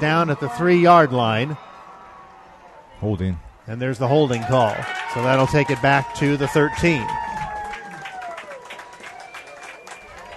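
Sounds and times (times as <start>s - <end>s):
speech: 0.0s - 1.7s, 3.0s - 7.2s
stadium crowd cheering and clapping: 0.0s - 10.3s
thin gliding whistling tones: 8.9s - 10.3s.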